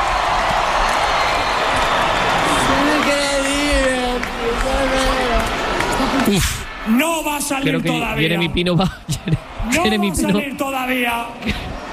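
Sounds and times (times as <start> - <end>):
audience applause and cheering: 0.0 - 11.9
speech: 6.3 - 11.7.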